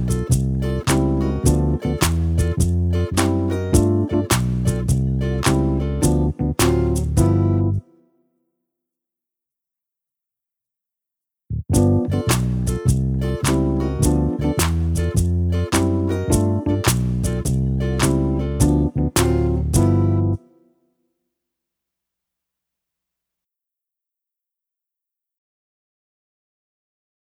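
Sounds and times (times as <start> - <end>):
instrumental music: 0.0 - 8.0, 11.8 - 20.6.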